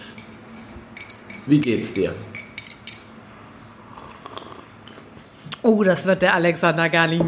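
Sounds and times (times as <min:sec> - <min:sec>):
speech: 0:01.5 - 0:02.4, 0:05.6 - 0:07.2
slurping coffee: 0:03.9 - 0:05.1.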